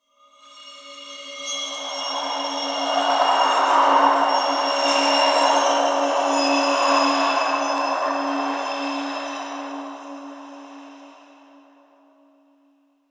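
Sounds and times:
spirit gust ambience inside a cave: 0:01.7 - 0:08.7.

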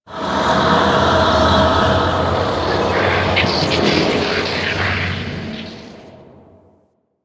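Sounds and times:
disturbance ambience: 0:01.2 - 0:06.7.

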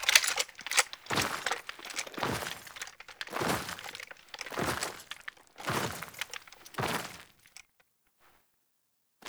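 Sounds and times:
tent foley: 0:00.0 - 0:07.2.

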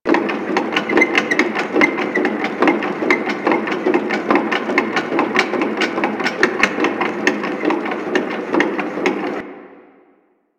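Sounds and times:
rail jack destroyer machine loop: 0:00.1 - 0:09.4.

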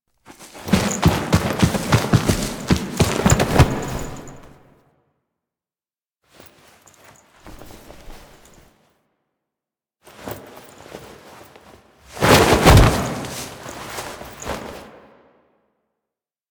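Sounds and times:
foley sounds: 0:00.4 - 0:04.5, 0:12.2 - 0:14.7.

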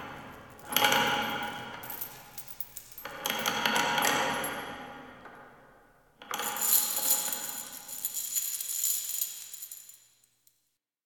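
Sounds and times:
chains rattling in a dungeon island ambience: 0:00.7 - 0:04.2, 0:06.5 - 0:10.2.

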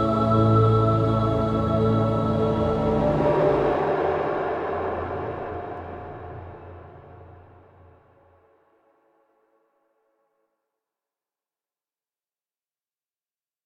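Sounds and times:
nursery background music mix: 0:00.0 - 0:10.2.

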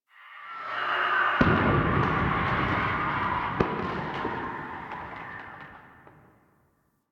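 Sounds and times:
distant explosions: 0:01.4 - 0:06.4.

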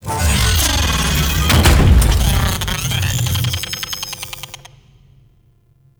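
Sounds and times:
intro slam: 0:00.1 - 0:03.8.

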